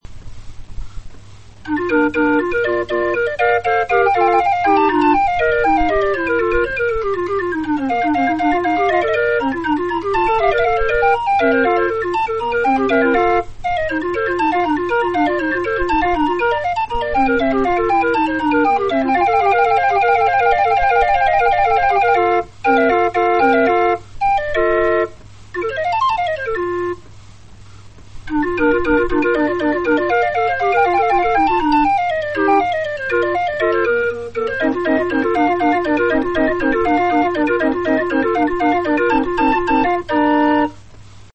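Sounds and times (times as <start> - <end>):
flute clock playing: 1.7 - 27.1, 28.3 - 40.8.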